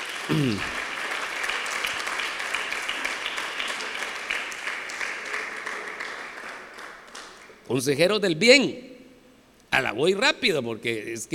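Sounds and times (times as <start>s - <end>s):
audience applauding: 0.0s - 7.6s
speech: 0.3s - 0.8s, 7.7s - 8.9s, 10.0s - 11.3s.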